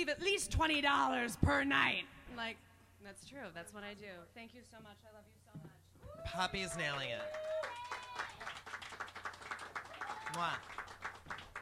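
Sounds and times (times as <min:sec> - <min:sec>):
speech: 0:00.0 - 0:07.9, 0:10.3 - 0:10.8
audience clapping: 0:06.6 - 0:11.6.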